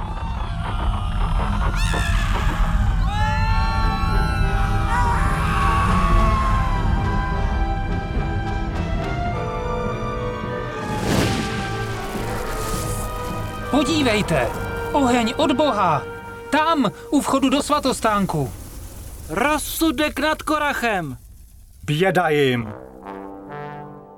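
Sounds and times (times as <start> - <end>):
earthquake rumble: 0.0 - 24.0
speech: 13.8 - 18.6, 19.3 - 21.2, 21.9 - 22.8.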